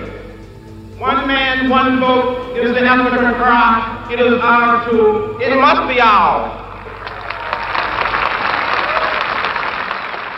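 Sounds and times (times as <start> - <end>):
speech: 1.0 - 6.6
crowd applause at a speech: 6.8 - 10.3.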